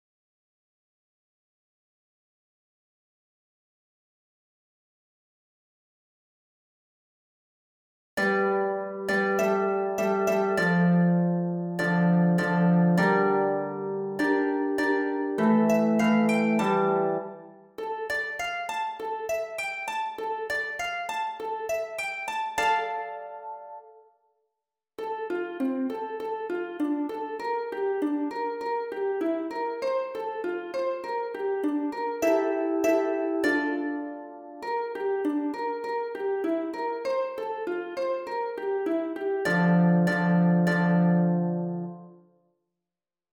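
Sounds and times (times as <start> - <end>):
harp: 8.2 - 24.0, 25.0 - 42.2.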